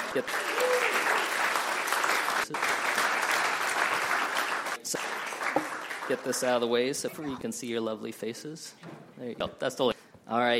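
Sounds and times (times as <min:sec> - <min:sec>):
audience applause: 0:00.0 - 0:06.7
speech: 0:00.1 - 0:00.8, 0:06.1 - 0:10.5.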